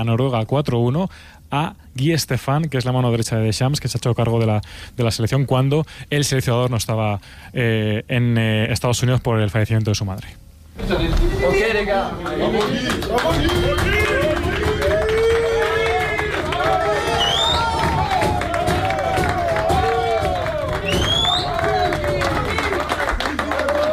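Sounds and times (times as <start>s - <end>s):
speech: 0.0s - 14.0s
footballers clapping in a dressing room: 12.0s - 23.9s
footballers shouting and whooping in a dressing room: 13.2s - 23.9s.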